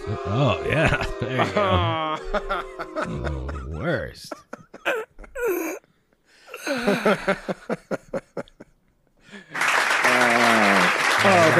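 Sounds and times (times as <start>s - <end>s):
laughter: 0.0s - 5.8s, 6.6s - 11.5s
speech: 0.1s - 4.5s, 6.8s - 7.9s
audience clapping: 9.3s - 11.5s.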